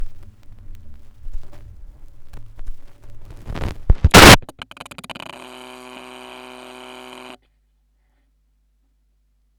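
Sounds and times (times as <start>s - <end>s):
vinyl record noise: 0.2s - 7.4s.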